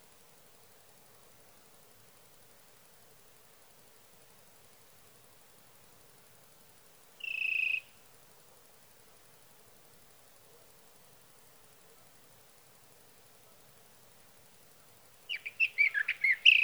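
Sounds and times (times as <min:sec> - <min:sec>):
sage thrasher: 0:15.3 - 0:16.6.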